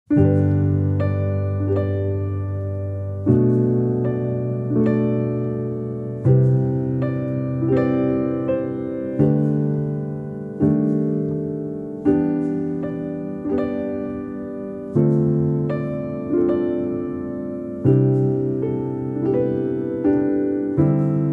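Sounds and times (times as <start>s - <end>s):
calm nature song: 0.1s - 21.3s.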